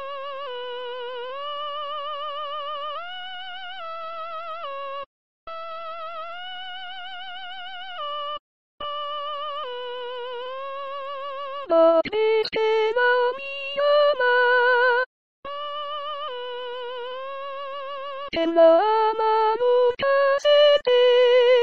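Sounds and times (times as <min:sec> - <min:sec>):
soprano singing Brazilian folk song: 0:11.7 - 0:15.1, 0:18.3 - 0:21.6.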